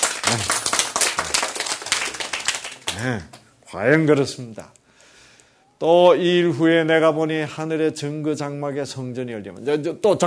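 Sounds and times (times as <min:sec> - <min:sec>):
audience clapping: 0:00.0 - 0:03.5
speech: 0:00.3 - 0:00.7, 0:03.0 - 0:04.8, 0:05.8 - 0:10.2.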